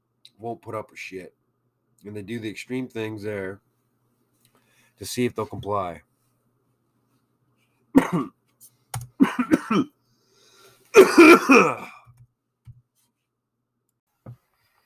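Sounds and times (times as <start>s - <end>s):
speech: 0.4s - 1.4s, 2.0s - 3.7s, 5.0s - 6.1s, 8.0s - 8.4s, 9.4s - 10.0s, 11.2s - 11.9s
person with a cold hacking coughs: 8.0s - 8.4s, 9.2s - 9.9s, 11.0s - 12.0s.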